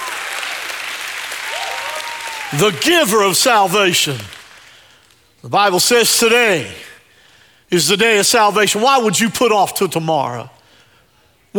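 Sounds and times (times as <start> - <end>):
audience hand clapping: 0.0 - 5.2
audience shouting praise: 1.5 - 2.8
speech: 2.5 - 4.4, 5.4 - 6.9, 7.7 - 10.6.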